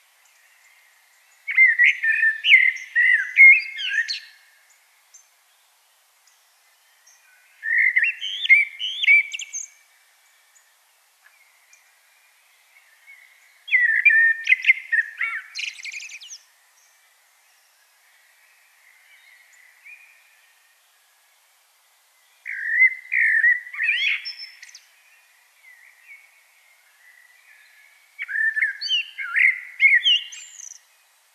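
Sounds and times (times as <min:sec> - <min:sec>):
Common blackbird singing: 0:00.2 - 0:04.4, 0:06.3 - 0:10.6, 0:12.7 - 0:17.7, 0:22.3 - 0:31.0.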